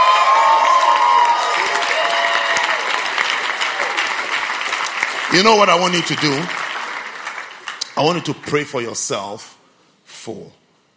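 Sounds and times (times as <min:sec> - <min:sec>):
audience clapping: 0:00.0 - 0:08.6
speech: 0:05.3 - 0:06.6, 0:08.0 - 0:09.6, 0:10.2 - 0:10.6.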